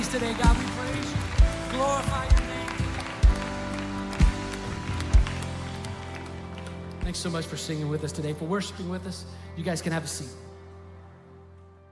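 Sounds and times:
speech: 0:00.0 - 0:02.4, 0:07.1 - 0:10.4
audience clapping hands: 0:00.0 - 0:08.0.

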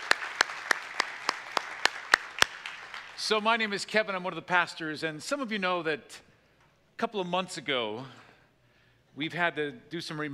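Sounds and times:
crowd applause at a church service greeting online viewers: 0:00.0 - 0:03.2
speech: 0:03.2 - 0:06.3, 0:07.0 - 0:08.2, 0:09.2 - 0:10.3.

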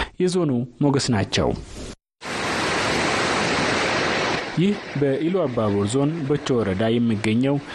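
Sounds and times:
speech: 0:00.2 - 0:01.9, 0:04.6 - 0:07.7
Sor waterfall roaring in Bicho district, Illu Aba Bor zone, Oromia, Ethiopia: 0:02.2 - 0:07.7.

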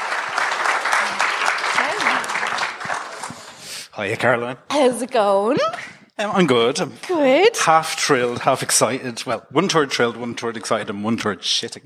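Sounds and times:
round of applause from an audience: 0:00.0 - 0:03.8
speech: 0:04.0 - 0:11.8.

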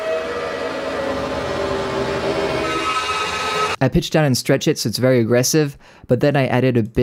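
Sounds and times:
high whining tones: 0:00.0 - 0:03.8
metro train rumble: 0:00.0 - 0:03.8
speech: 0:03.8 - 0:07.0.

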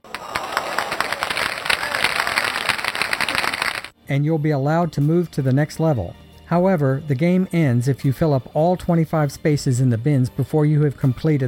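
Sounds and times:
round of applause: 0:00.0 - 0:04.0
speech: 0:04.1 - 0:11.4.

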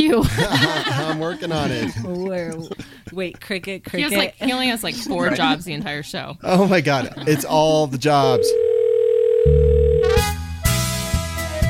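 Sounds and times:
laughter: 0:00.0 - 0:03.5, 0:04.2 - 0:08.4
speech: 0:00.0 - 0:08.7
telephone dial tone: 0:08.3 - 0:10.2.

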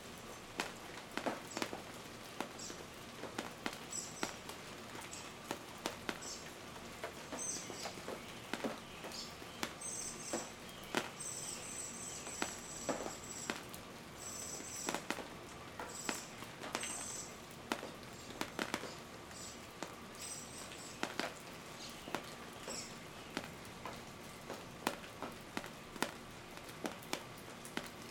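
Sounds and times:
rain dripping: 0:00.0 - 0:28.0
birds: 0:02.5 - 0:02.8, 0:03.8 - 0:13.6, 0:14.2 - 0:15.1, 0:15.8 - 0:17.5, 0:18.1 - 0:24.5.

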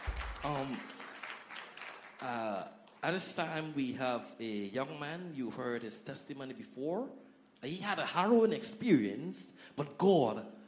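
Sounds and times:
audience clapping: 0:00.0 - 0:03.2
speech: 0:00.4 - 0:01.0, 0:02.2 - 0:10.6.

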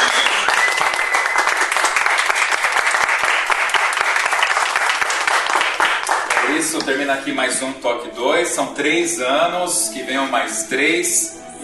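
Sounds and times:
audience applause: 0:00.0 - 0:06.8
speech: 0:06.9 - 0:11.6.

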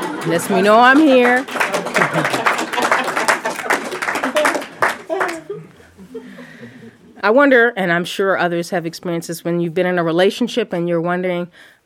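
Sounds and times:
audience clapping: 0:00.0 - 0:05.6
laughter: 0:00.0 - 0:07.1
speech: 0:00.2 - 0:02.5, 0:07.2 - 0:11.8.

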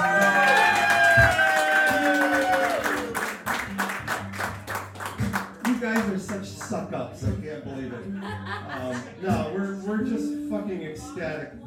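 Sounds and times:
audience applause: 0:00.0 - 0:06.3
laughter: 0:07.6 - 0:09.7
speech: 0:10.0 - 0:11.6.

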